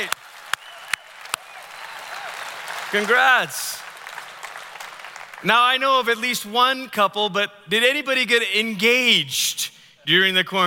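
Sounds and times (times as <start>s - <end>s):
faint cheering: 0.0s - 3.4s
audience applauding: 0.0s - 6.2s
speech: 2.9s - 3.9s, 5.4s - 10.6s.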